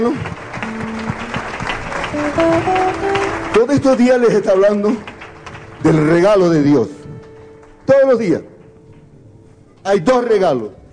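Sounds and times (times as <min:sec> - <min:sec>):
speech: 0:00.0 - 0:00.4, 0:02.2 - 0:05.1, 0:05.8 - 0:07.0, 0:07.9 - 0:08.5, 0:09.8 - 0:10.8
church congregation applauding during a worship service: 0:00.0 - 0:08.4.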